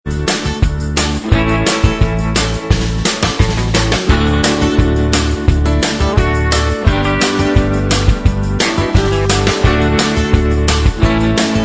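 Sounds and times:
instrumental backing track: 0:00.1 - 0:11.6.

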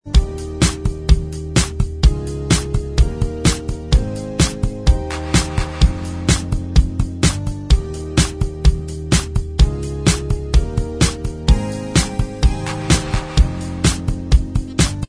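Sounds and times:
instrumental backing track: 0:00.0 - 0:15.0.

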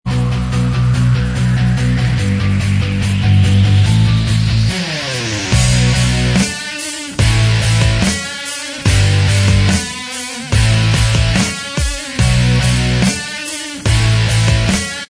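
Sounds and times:
instrumental backing track: 0:00.1 - 0:15.0.

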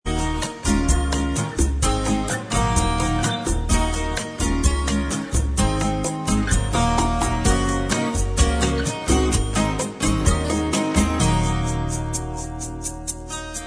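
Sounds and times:
bossa nova instrumental track: 0:00.1 - 0:13.6.

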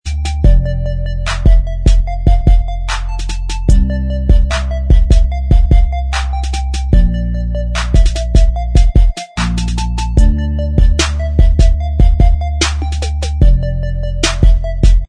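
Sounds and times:
instrumental backing track: 0:00.0 - 0:15.0.

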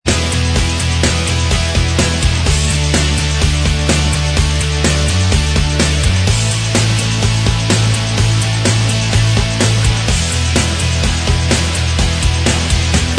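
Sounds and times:
instrumental music: 0:00.1 - 0:13.1.

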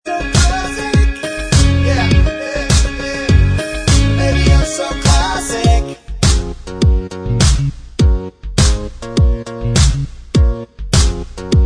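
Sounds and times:
backing track: 0:00.0 - 0:11.6
backing vocals: 0:00.1 - 0:06.1.

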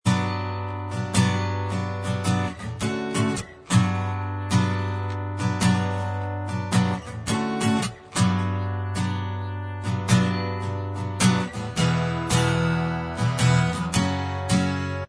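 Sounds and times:
acoustic instrumental music: 0:00.0 - 0:15.0.

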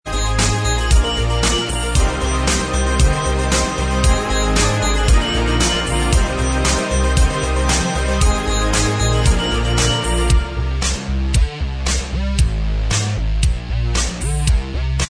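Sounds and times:
instrumental music: 0:00.1 - 0:15.0.

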